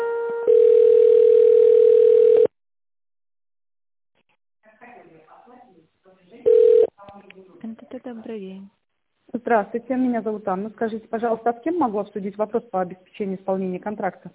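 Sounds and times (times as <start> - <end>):
telephone line tone while waiting for operator: 0.1 - 2.5, 6.5 - 6.9
speech: 8.1 - 14.3.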